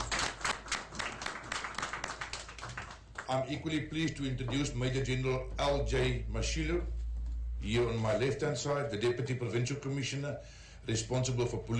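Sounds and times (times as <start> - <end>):
audience clapping: 0.0 - 3.6
speech: 3.3 - 7.0, 7.6 - 11.7.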